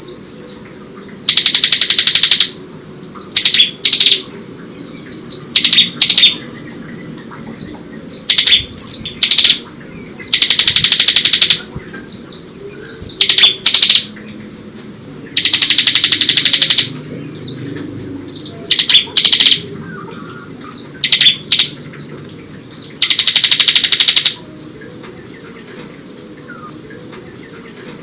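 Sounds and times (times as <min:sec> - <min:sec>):
bird song with high buzzy trills and downslurred whistles: 0:00.0 - 0:28.0.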